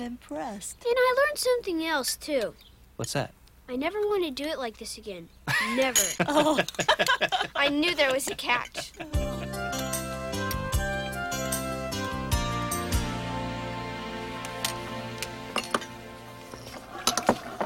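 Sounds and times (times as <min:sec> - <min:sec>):
speech: 0:00.0 - 0:09.4
steady hum: 0:00.0 - 0:17.6
laughter: 0:05.5 - 0:09.7
dishes and pans clinking while being washed: 0:15.6 - 0:17.6.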